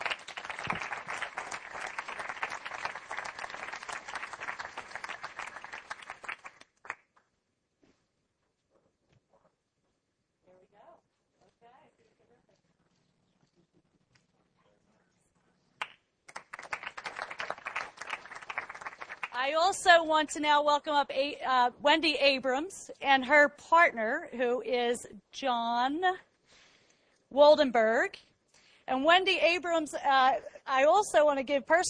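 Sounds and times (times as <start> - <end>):
audience applause at a green-building event: 0.0 - 7.0, 16.3 - 19.4
speech: 19.5 - 26.3, 27.3 - 28.3, 28.9 - 31.8.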